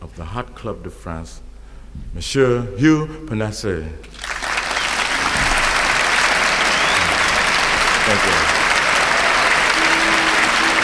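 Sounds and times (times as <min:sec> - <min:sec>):
speech: 0:00.2 - 0:04.2
audience applause: 0:04.2 - 0:10.8.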